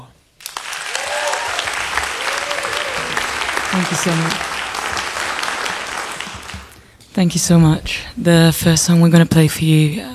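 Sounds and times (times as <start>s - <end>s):
audience applause at a live music show welcoming a performer: 0.4s - 7.0s
speech: 3.8s - 4.5s, 7.2s - 10.1s.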